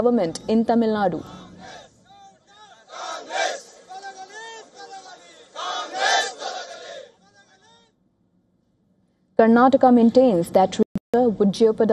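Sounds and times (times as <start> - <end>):
speech: 0.0 - 1.8, 9.4 - 11.9
protesters shouting at a rally: 1.2 - 7.8.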